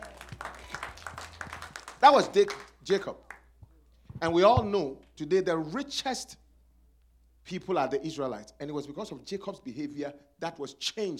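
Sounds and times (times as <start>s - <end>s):
audience clapping: 0.0s - 3.5s
speech: 2.0s - 3.2s, 4.2s - 6.4s, 7.4s - 11.1s.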